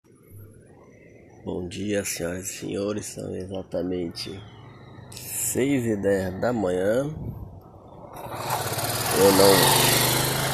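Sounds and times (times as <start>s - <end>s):
speech: 1.4s - 4.6s, 5.5s - 7.4s, 9.2s - 9.9s
motorcycle passing by: 4.4s - 5.4s, 7.8s - 10.5s.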